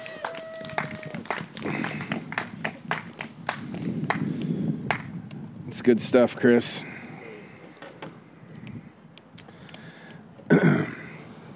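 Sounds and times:
round of applause: 0.0 - 4.2
speech: 5.8 - 6.9.

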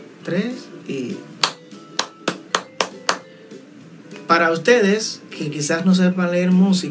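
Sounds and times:
speech: 0.2 - 1.5, 4.3 - 6.9
hand clapping a musical rhythm: 1.4 - 3.3.

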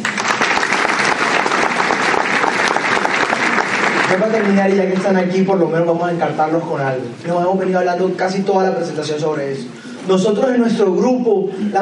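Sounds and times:
audience applause: 0.0 - 5.1
speech: 4.1 - 11.8.

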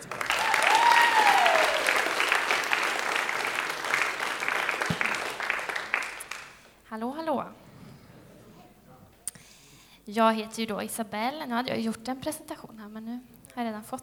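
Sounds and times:
audience applause: 0.0 - 6.7
speech: 10.1 - 13.1, 13.8 - 14.0.

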